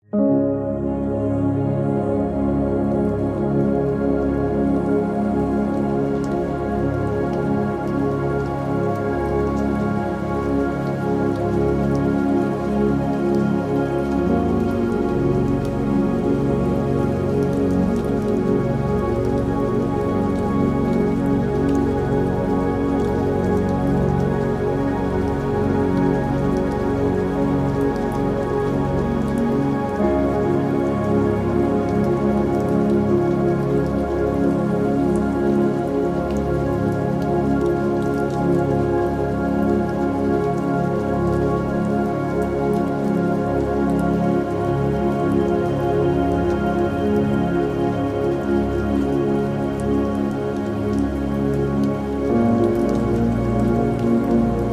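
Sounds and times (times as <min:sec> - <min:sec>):
rain: 0:00.0 - 0:54.7.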